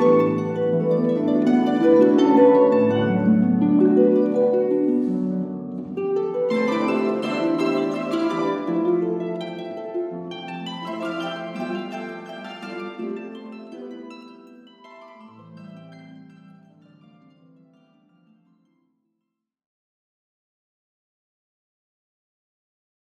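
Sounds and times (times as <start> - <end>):
twin harps playing: 0.0 - 17.7.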